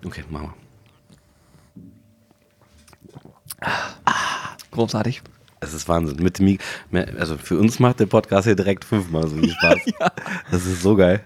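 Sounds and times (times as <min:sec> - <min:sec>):
speech: 0:00.0 - 0:00.7, 0:04.8 - 0:11.2
person taking a sip of a drink, slurping and swallowing: 0:00.8 - 0:05.6
laughter: 0:09.2 - 0:11.0.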